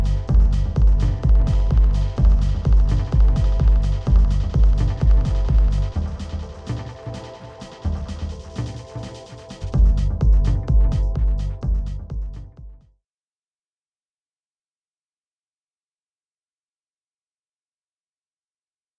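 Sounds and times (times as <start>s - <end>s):
dub echo effect on Pioneer DJS 1000: 0.0s - 6.9s, 9.7s - 12.8s.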